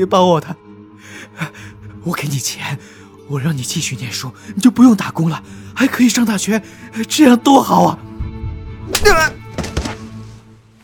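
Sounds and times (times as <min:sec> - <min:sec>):
speech: 0:00.0 - 0:08.2, 0:09.0 - 0:09.4
body falling to the floor: 0:09.0 - 0:10.4.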